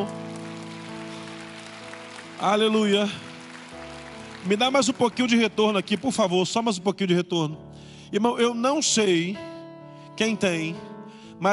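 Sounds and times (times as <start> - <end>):
speech: 0.0 - 0.2, 2.4 - 3.3, 4.4 - 9.5, 10.2 - 11.5
audience applauding: 0.0 - 6.6.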